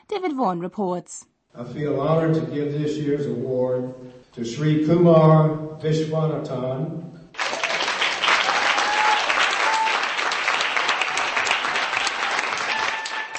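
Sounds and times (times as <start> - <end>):
speech: 0.1 - 7.1
huge cheer of support from friends: 7.4 - 13.3.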